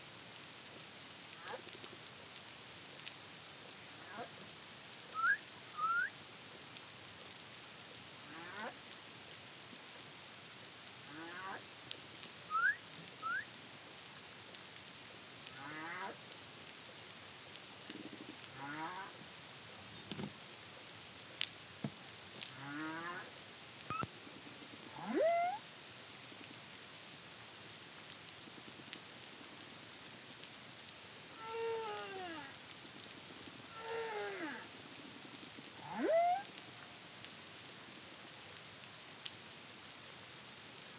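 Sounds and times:
hiss: 0:00.0 - 0:40.9
humpback whale song: 0:05.2 - 0:06.1, 0:12.5 - 0:13.4, 0:35.9 - 0:36.5
clicks and snaps: 0:23.9 - 0:24.2.

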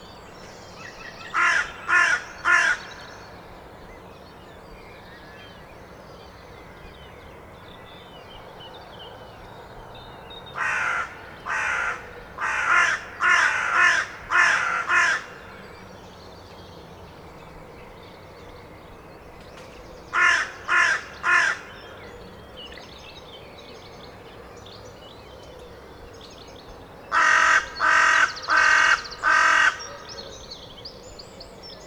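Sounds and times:
carrion crow cawing: 0:01.3 - 0:03.0, 0:10.6 - 0:15.6, 0:20.2 - 0:21.8, 0:27.1 - 0:30.1.

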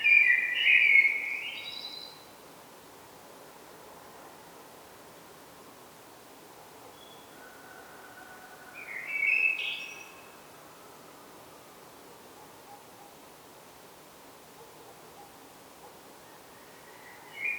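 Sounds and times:
Turdus merula common blackbird song: 0:00.0 - 0:02.2, 0:08.8 - 0:10.4, 0:16.8 - 0:17.5.

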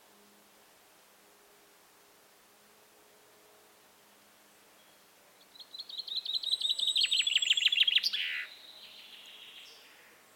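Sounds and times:
common chaffinch singing: 0:05.6 - 0:10.0.

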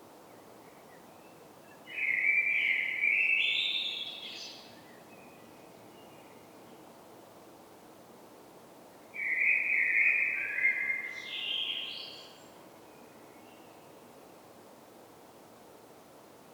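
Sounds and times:
common blackbird Turdus merula song with fluted whistled phrases: 0:00.3 - 0:06.8, 0:09.2 - 0:14.0.

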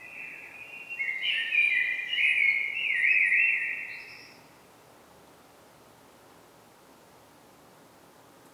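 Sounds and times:
common blackbird Turdus merula song: 0:00.0 - 0:04.5.

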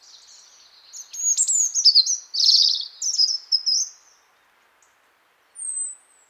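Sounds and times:
European robin song: 0:00.3 - 0:04.0.

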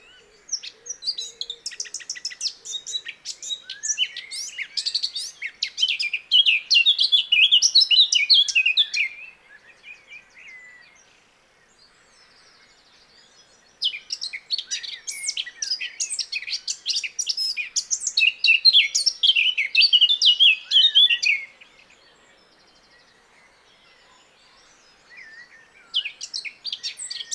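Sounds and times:
Eurasian blackcap song: 0:00.0 - 0:09.3, 0:13.8 - 0:21.5, 0:25.2 - 0:27.3.

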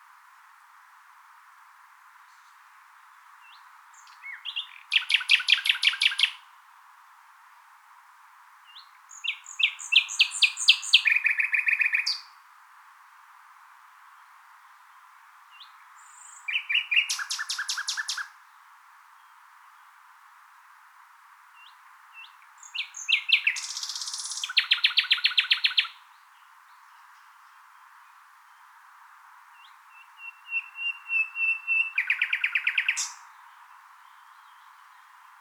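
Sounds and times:
common nightingale song: 0:02.2 - 0:06.6, 0:08.6 - 0:12.4, 0:14.0 - 0:20.8, 0:21.4 - 0:35.3.

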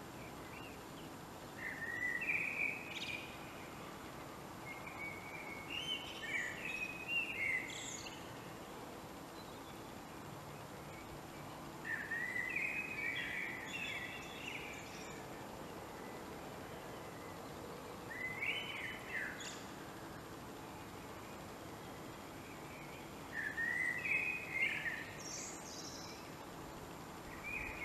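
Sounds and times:
steady hiss: 0:00.0 - 0:27.8
Common blackbird song: 0:01.6 - 0:03.6, 0:04.6 - 0:08.3, 0:11.8 - 0:15.3, 0:18.1 - 0:19.7, 0:22.5 - 0:26.3, 0:27.3 - 0:27.8.

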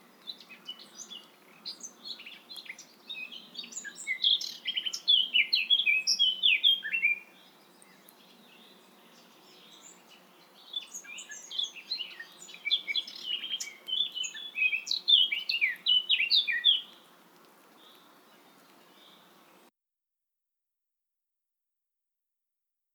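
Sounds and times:
Eurasian blackcap Sylvia atricapilla singing: 0:00.2 - 0:17.0.

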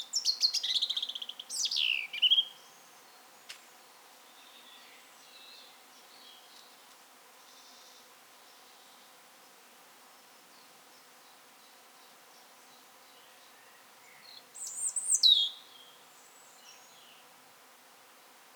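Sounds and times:
European robin Erithacus rubecula song: 0:00.0 - 0:02.9, 0:14.1 - 0:16.9.

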